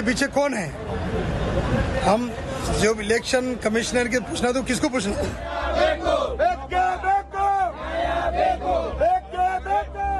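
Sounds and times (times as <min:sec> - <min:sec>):
speech: 0:00.0 - 0:07.1
protesters shouting: 0:05.1 - 0:10.1.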